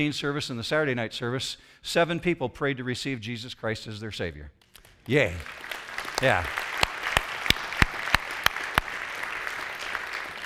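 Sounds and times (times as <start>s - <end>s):
speech: 0.0s - 6.6s
sharp claps: 4.6s - 10.4s
audience applause: 5.1s - 10.4s.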